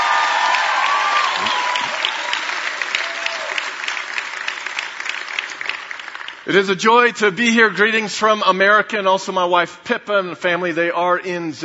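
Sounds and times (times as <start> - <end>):
church audience applauding: 0.0 - 6.8
speech: 6.5 - 11.6.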